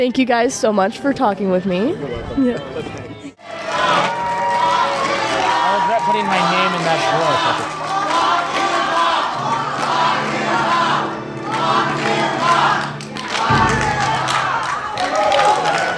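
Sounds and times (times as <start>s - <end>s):
speech: 0.0s - 3.0s, 6.2s - 7.8s
Women's March attendees clapping: 2.8s - 15.9s
Brookings Harbor Women's March crowd chanting lock him up: 3.4s - 15.9s.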